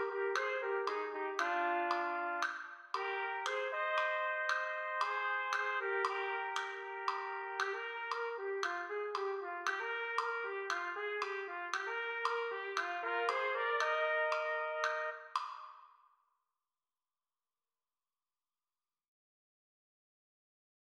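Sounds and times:
B-flat trumpet playing a march: 0.0 - 15.5.

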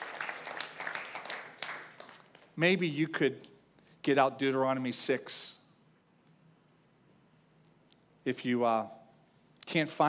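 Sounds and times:
audience clapping: 0.0 - 2.6
speech: 2.6 - 5.6, 8.2 - 9.0, 9.7 - 10.0.

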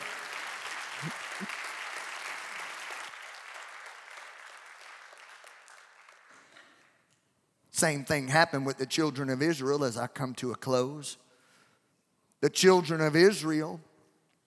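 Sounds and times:
audience clapping hands: 0.0 - 6.8
speech: 1.0 - 1.6, 7.8 - 11.2, 12.4 - 13.9.

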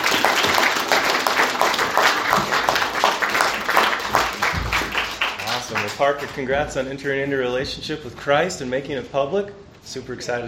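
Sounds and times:
audience applause: 0.0 - 6.4
speech: 6.0 - 10.4.

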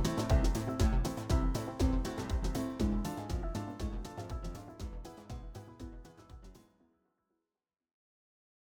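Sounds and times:
electro swing music: 0.0 - 6.5.

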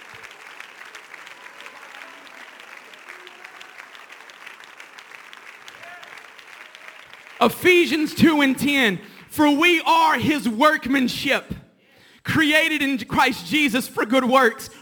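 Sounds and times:
audience clapping hands: 0.0 - 10.2
speech: 7.4 - 11.6, 12.4 - 14.7.

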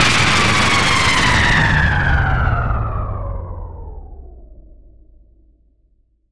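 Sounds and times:
high power down drop sound effect: 0.0 - 3.4.

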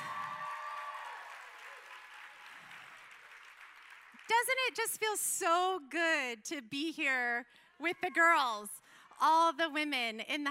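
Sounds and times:
audience applause: 0.0 - 5.0
speech: 4.3 - 10.4.

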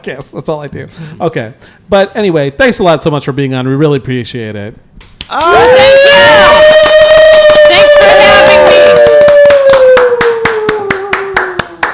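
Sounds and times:
speech: 0.0 - 6.9
hands clapping: 5.1 - 11.9.

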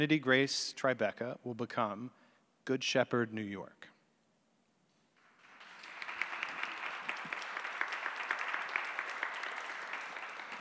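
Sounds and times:
speech: 0.0 - 3.8
audience applause: 5.4 - 10.5.

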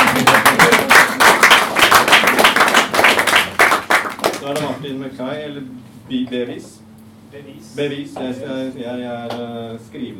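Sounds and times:
clapping: 0.0 - 4.8
speech: 4.5 - 10.1.

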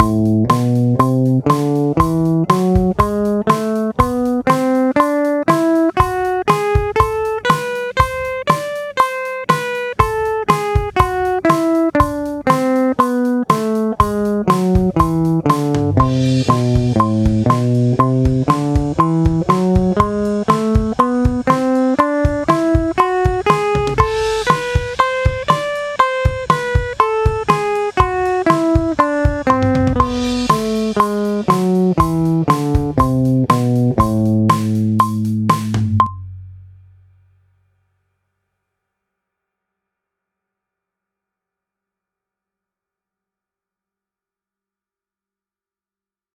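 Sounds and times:
guitar melody in A minor at 120: 0.0 - 37.1.

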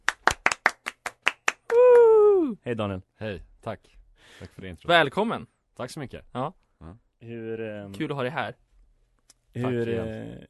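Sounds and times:
sharp loud hand claps: 0.0 - 2.1
speech: 2.6 - 8.6, 9.5 - 10.4.

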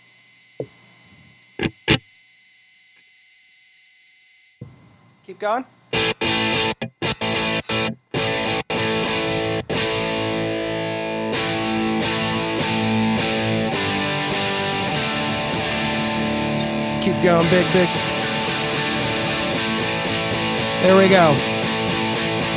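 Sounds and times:
amp capture test tones: 0.0 - 22.5
speech: 5.3 - 5.8, 17.2 - 18.1, 20.8 - 21.5.

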